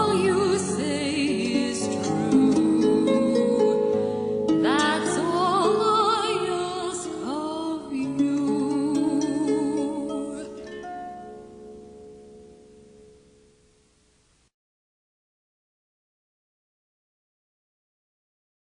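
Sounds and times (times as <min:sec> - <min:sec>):
harp: 0:00.0 - 0:14.0.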